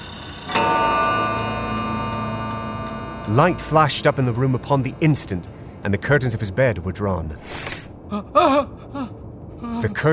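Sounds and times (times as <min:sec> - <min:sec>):
deep hollow hour bell tolling: 0:00.5 - 0:05.8
speech: 0:03.3 - 0:09.0, 0:09.8 - 0:10.1.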